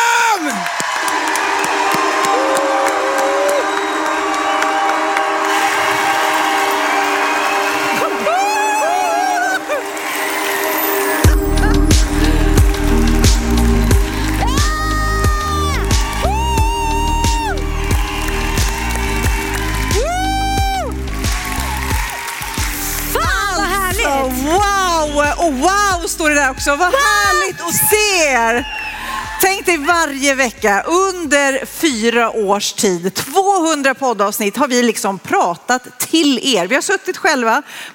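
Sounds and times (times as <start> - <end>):
audience applause: 0.2 - 25.6, 27.0 - 29.7
speech: 26.6 - 28.8, 29.4 - 37.9.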